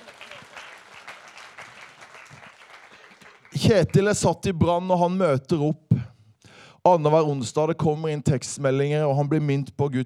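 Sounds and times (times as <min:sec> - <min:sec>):
audience applause: 0:00.0 - 0:03.9
speech: 0:03.5 - 0:05.8, 0:06.8 - 0:10.0.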